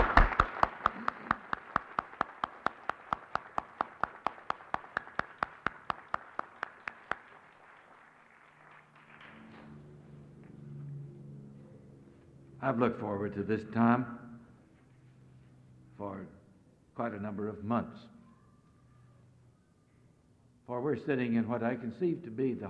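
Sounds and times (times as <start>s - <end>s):
audience applause for a choir: 0.0s - 9.7s
speech: 12.6s - 14.2s, 17.2s - 18.2s, 20.9s - 22.6s.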